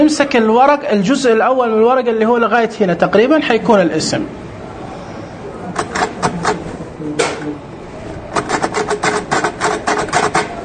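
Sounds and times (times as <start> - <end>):
speech: 0.0 - 4.5
typing on a typewriter: 5.8 - 6.7, 8.3 - 10.6.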